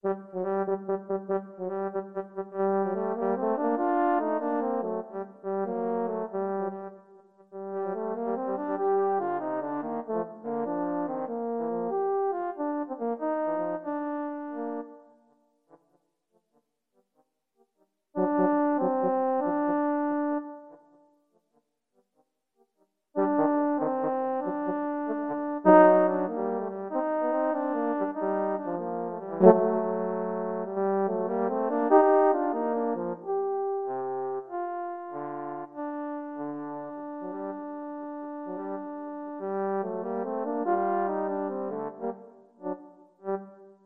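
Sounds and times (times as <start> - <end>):
french horn duet: 0.0 - 15.1, 18.2 - 20.8, 23.2 - 43.8.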